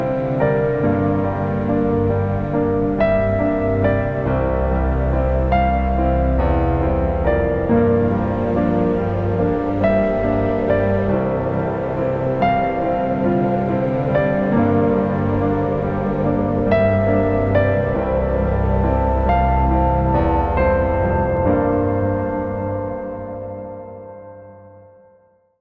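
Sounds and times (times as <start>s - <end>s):
sentimental piano music at 70 bpm: 0.0s - 25.5s.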